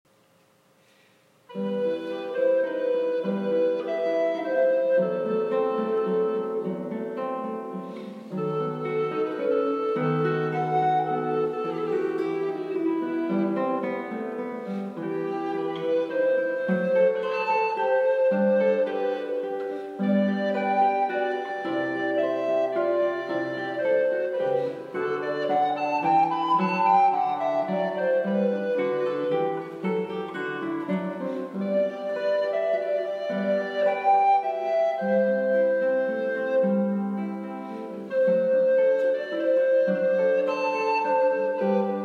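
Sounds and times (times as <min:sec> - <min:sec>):
siciliano piece: 0:00.8 - 0:42.0.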